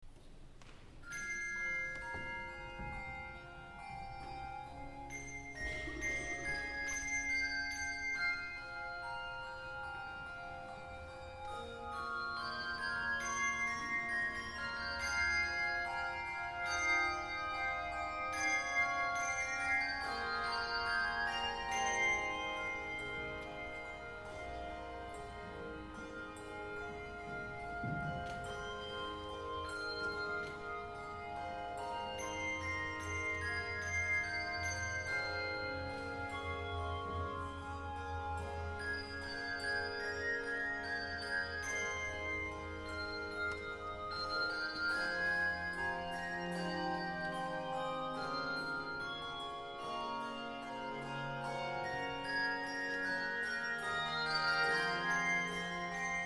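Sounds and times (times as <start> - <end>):
handbell choir: 0.7 - 56.2.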